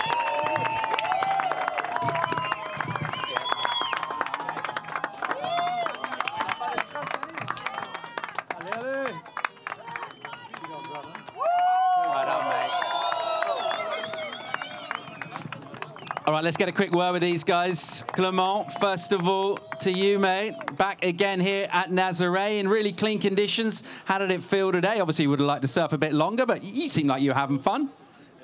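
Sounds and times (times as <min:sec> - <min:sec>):
crowd cheering and clapping at the Nazaré surf event in Portugal: 0:00.0 - 0:21.6
speech: 0:16.4 - 0:28.0.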